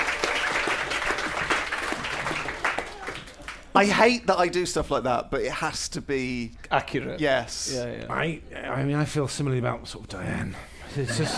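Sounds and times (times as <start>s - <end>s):
round of applause: 0.0s - 3.7s
speech: 3.8s - 11.3s
laughter: 10.9s - 11.3s.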